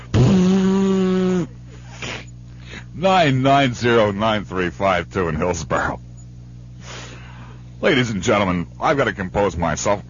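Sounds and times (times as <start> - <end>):
person blowing nose: 0.0 - 2.3, 6.8 - 7.2
speech: 3.0 - 6.1, 7.8 - 10.0.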